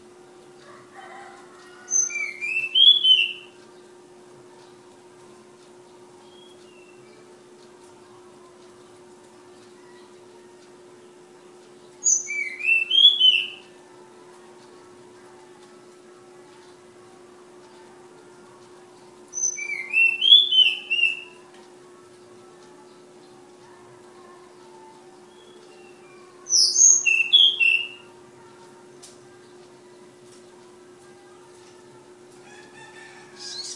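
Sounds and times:
steady low electrical hum: 0:00.0 - 0:33.7
flowerpecker song: 0:01.9 - 0:03.6, 0:12.0 - 0:13.7, 0:19.4 - 0:21.4, 0:25.3 - 0:28.1, 0:33.0 - 0:33.7.

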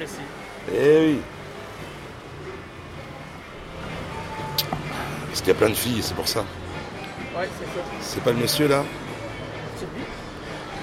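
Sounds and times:
speech: 0:00.0 - 0:01.4, 0:05.4 - 0:06.6, 0:07.4 - 0:09.1
cars passing by on a street: 0:00.0 - 0:10.8.

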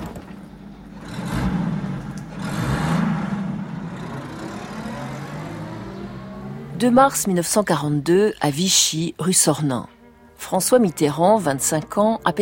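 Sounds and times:
car engine revving and pulling away: 0:00.5 - 0:07.2
speech: 0:06.8 - 0:12.3.

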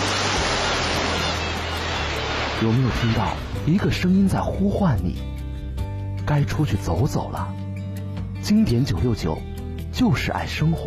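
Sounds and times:
ocean waves breaking: 0:00.0 - 0:04.4
speech: 0:02.6 - 0:05.3, 0:06.3 - 0:07.6, 0:08.4 - 0:10.8.

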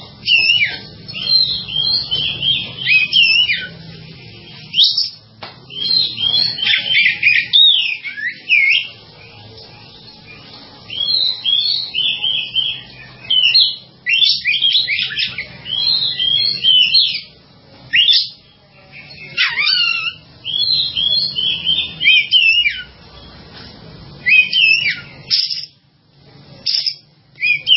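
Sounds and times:
bird song: 0:00.0 - 0:23.4, 0:24.2 - 0:25.8, 0:26.5 - 0:27.7.

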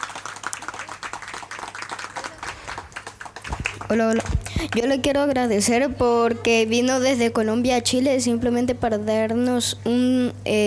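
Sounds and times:
audience applause: 0:00.0 - 0:04.6
speech: 0:03.9 - 0:10.6.

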